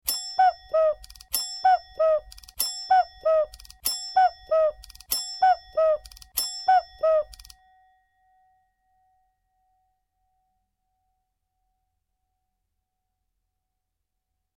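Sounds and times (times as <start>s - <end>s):
cuckoo clock: 0.0s - 7.8s.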